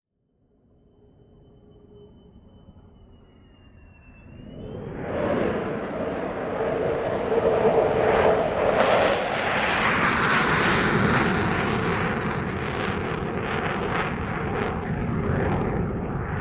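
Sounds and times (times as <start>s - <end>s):
F-4 Phantom jet afterburner roar: 3.4s - 16.3s.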